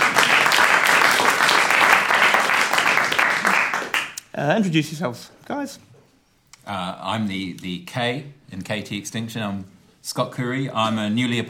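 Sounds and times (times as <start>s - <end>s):
crowd applauding: 0.0s - 4.2s
speech: 4.4s - 5.9s, 6.7s - 11.4s.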